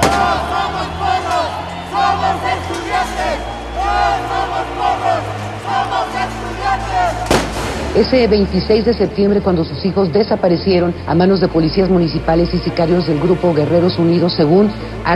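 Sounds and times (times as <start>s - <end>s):
protest crowd chanting: 0.0s - 8.0s
speech: 8.0s - 15.1s.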